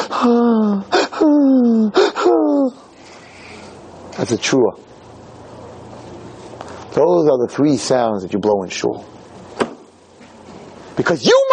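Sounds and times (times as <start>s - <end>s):
voice imitating a hiccupping sob: 0.0s - 2.9s
speech: 0.2s - 0.9s, 4.2s - 4.9s, 7.0s - 9.1s, 11.0s - 11.5s.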